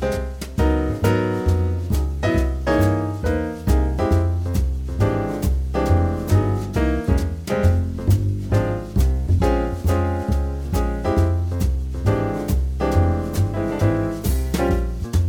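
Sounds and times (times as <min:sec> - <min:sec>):
minor blues playalong backing track: 0:00.0 - 0:15.2.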